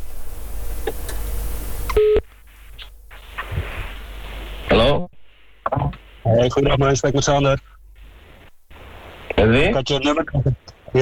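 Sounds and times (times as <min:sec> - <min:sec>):
low hum: 0:00.0 - 0:11.0
phone line noise: 0:01.9 - 0:03.8
telephone beeping tones during call: 0:02.0 - 0:02.2
speech: 0:06.3 - 0:07.8, 0:09.5 - 0:11.0.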